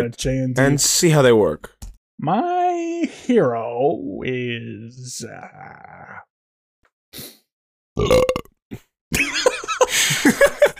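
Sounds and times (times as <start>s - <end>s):
speech: 0.0s - 6.3s, 8.0s - 8.8s
two people burping: 8.0s - 8.5s
laughter: 9.1s - 10.7s.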